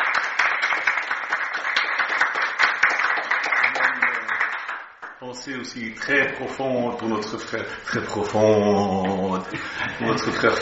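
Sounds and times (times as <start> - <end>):
audience applauding: 0.0 - 5.2
speech: 5.2 - 10.6.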